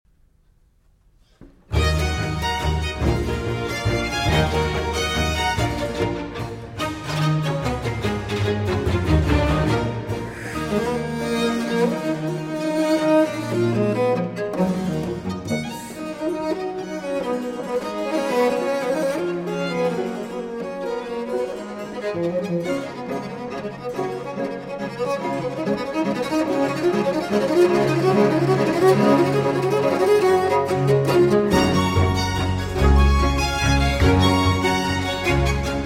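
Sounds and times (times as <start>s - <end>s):
concerto for cello and bassoon in E minor, allegro movement: 1.7s - 35.8s.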